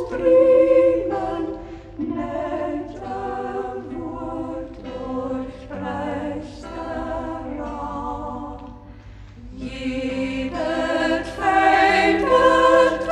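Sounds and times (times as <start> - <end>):
chamber choir singing in Schäßburg local dialect: 0.0 - 13.0.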